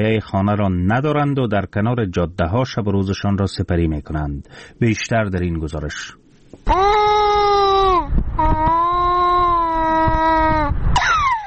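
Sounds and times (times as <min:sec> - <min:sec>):
speech: 0:00.0 - 0:06.9
hungry infant crying: 0:06.6 - 0:11.4.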